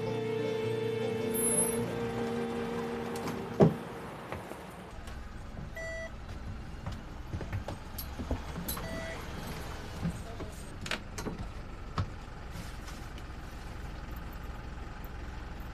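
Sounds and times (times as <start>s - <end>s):
vehicle engine rumbling: 0.0s - 15.7s
short electronic beep: 5.8s - 6.1s.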